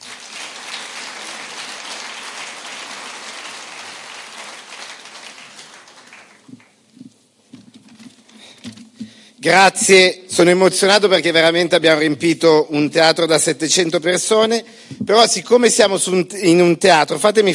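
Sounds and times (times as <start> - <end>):
theater audience applauding: 0.0 - 6.8
speech: 9.4 - 17.5.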